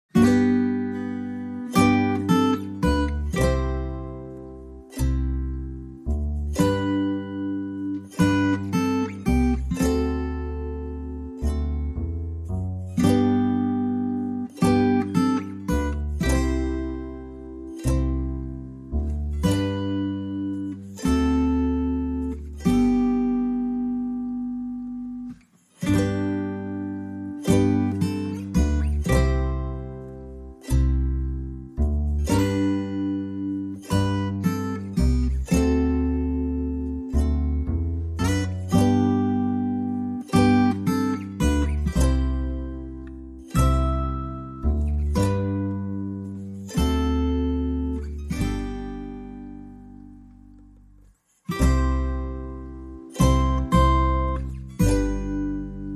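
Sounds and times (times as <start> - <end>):
guitars: 0.0 - 55.9.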